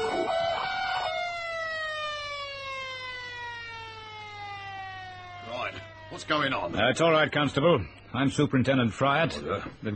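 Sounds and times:
security alarm siren winding down: 0:00.0 - 0:06.8
speech: 0:06.1 - 0:09.9.

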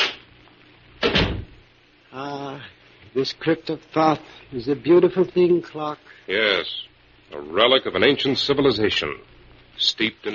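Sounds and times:
door pushed shut with a rattling tail: 0:01.0 - 0:01.6
speech: 0:02.2 - 0:10.3.

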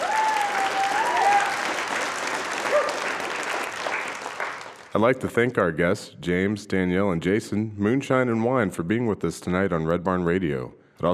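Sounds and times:
audience applause: 0:00.0 - 0:05.0
speech: 0:05.0 - 0:11.1.

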